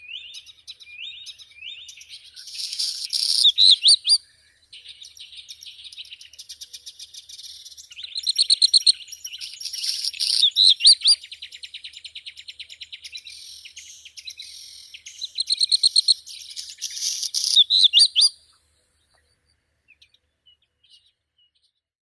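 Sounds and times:
black redstart Phoenicurus ochruros: 0:00.0 - 0:21.8.

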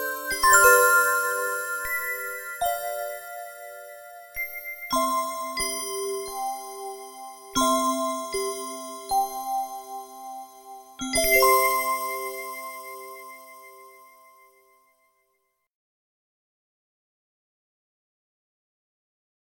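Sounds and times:
instrumental Christmas song: 0:00.0 - 0:14.9.

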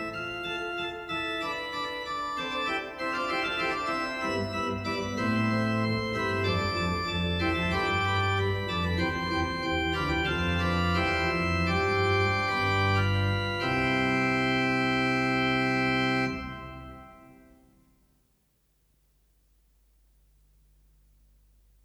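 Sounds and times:
fugue in C major: 0:00.0 - 0:17.4.

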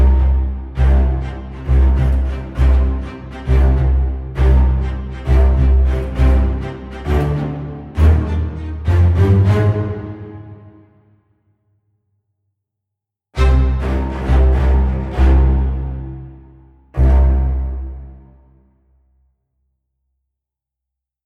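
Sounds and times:
low strings: 0:00.0 - 0:10.8, 0:13.4 - 0:18.4.

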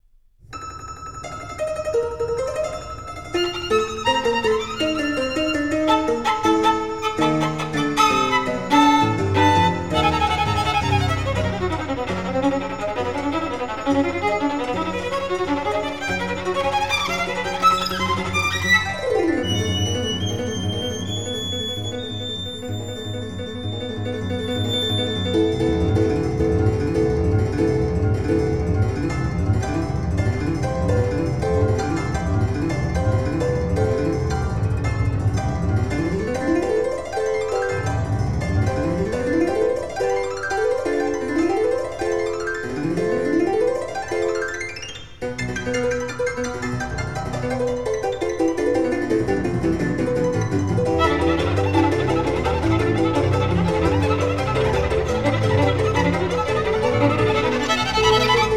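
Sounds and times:
piano: 0:00.4 - 0:58.5
violin: 0:00.5 - 0:58.5.

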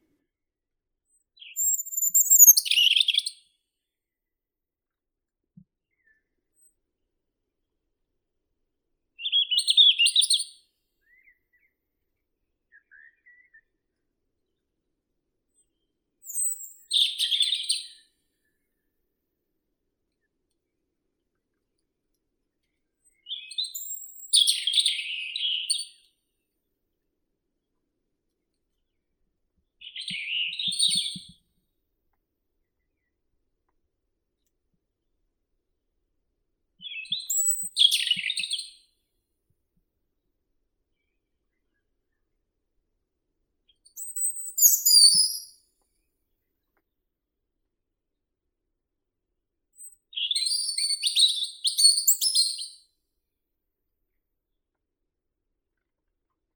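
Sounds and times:
robin Erithacus rubecula singing: 0:01.4 - 0:03.4, 0:09.2 - 0:10.5, 0:16.2 - 0:18.0, 0:23.2 - 0:26.1, 0:29.8 - 0:31.3, 0:36.8 - 0:38.8, 0:43.8 - 0:45.6, 0:49.8 - 0:52.8.

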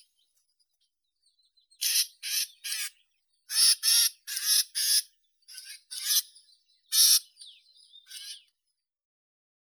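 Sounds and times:
sedge warbler Acrocephalus schoenobaenus: 0:01.8 - 0:08.5.

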